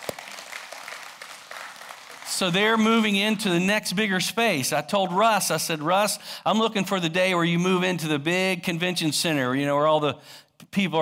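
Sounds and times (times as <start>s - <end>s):
audience applause: 0.0s - 2.8s
speech: 2.4s - 11.0s.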